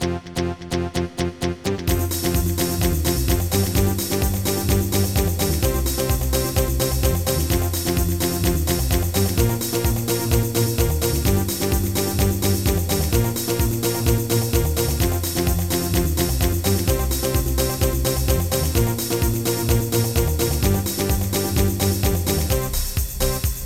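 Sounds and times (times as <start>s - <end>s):
upbeat music: 0.0s - 23.6s.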